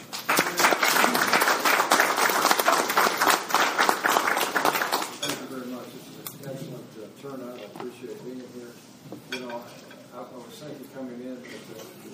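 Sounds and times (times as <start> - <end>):
audience applause welcoming a speaker at a chapter meeting: 0.0 - 5.2.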